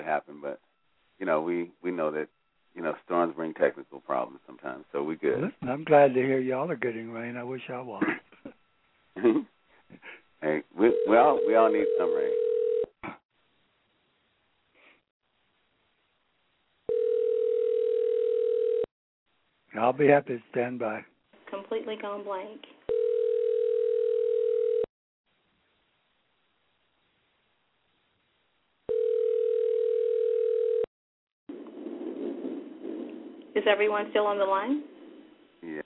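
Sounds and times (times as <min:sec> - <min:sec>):
speech: 0:00.1 - 0:08.6, 0:09.2 - 0:13.2, 0:19.8 - 0:23.0, 0:33.6 - 0:34.9, 0:35.6 - 0:35.8
telephone dial tone: 0:10.9 - 0:12.9, 0:16.9 - 0:18.9, 0:22.9 - 0:24.9, 0:28.9 - 0:30.9.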